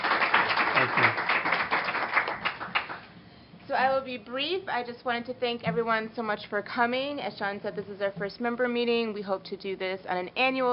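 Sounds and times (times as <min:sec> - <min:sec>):
audience applause: 0:00.0 - 0:03.0
speech: 0:03.8 - 0:10.7.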